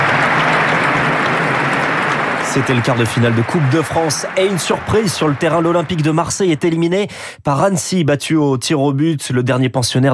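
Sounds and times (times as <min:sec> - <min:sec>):
stadium crowd applause at the Vélodrome: 0:00.0 - 0:07.2
speech: 0:02.6 - 0:10.1.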